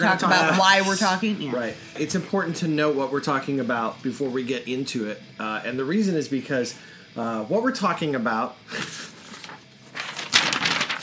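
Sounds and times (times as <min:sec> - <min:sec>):
speech: 0:00.0 - 0:09.1
paper being pulled up, rustling: 0:08.8 - 0:11.0.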